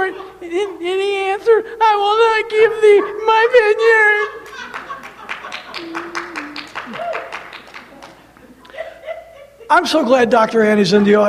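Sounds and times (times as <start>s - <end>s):
laughter: 0.0s - 10.0s
speech: 0.4s - 4.4s, 5.8s - 6.3s, 9.7s - 11.2s
audience member clapping: 4.4s - 8.8s.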